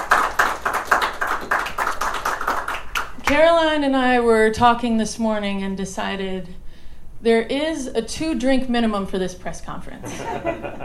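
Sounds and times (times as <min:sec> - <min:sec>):
audience applause: 0:00.0 - 0:03.2
speech: 0:03.3 - 0:06.6, 0:07.2 - 0:10.8
laughter: 0:10.0 - 0:10.8.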